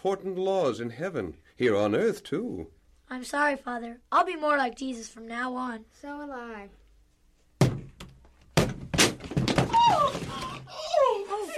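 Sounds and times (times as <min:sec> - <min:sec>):
speech: 0:00.0 - 0:06.8
door being broken down: 0:07.6 - 0:10.7.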